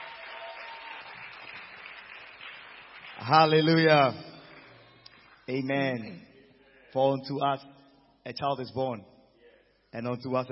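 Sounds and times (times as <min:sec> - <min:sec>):
large audience clapping: 0:00.0 - 0:05.6
speech: 0:03.2 - 0:04.3, 0:05.5 - 0:06.3, 0:06.9 - 0:09.1, 0:09.9 - 0:10.4.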